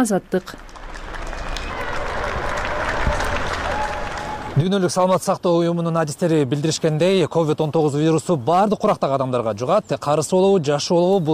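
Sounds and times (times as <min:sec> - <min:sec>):
speech: 0:00.0 - 0:00.8, 0:04.6 - 0:11.3
people in Europe applauding medical workers: 0:00.5 - 0:04.9.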